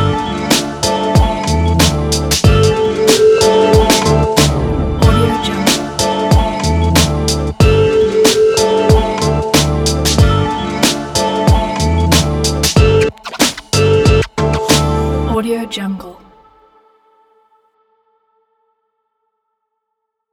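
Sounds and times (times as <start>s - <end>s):
hip hop music: 0.0s - 16.0s.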